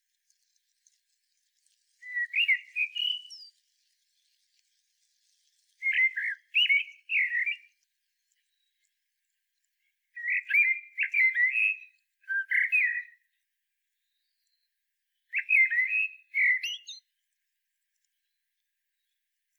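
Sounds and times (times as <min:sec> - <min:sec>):
common blackbird singing: 0:02.0 - 0:03.6, 0:05.8 - 0:07.8, 0:10.2 - 0:13.3, 0:15.3 - 0:17.1.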